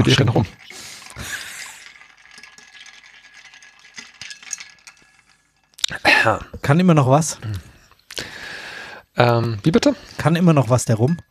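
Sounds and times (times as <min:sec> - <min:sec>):
speech: 0:00.0 - 0:01.3, 0:06.2 - 0:07.7, 0:09.2 - 0:11.2
ice cubes rattling and clinking in a glass: 0:00.0 - 0:05.8.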